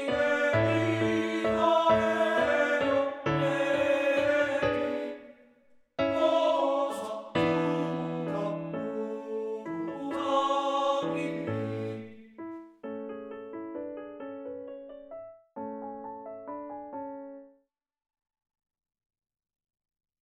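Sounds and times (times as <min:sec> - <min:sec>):
art song for voice: 0:00.0 - 0:05.4, 0:06.0 - 0:12.4
piano: 0:00.0 - 0:17.6.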